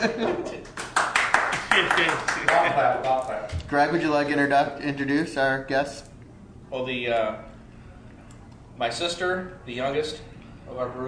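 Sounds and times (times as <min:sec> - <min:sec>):
speech: 0:00.0 - 0:00.6, 0:01.8 - 0:06.1, 0:06.7 - 0:07.5, 0:08.8 - 0:11.0
audience round of applause: 0:00.8 - 0:02.7.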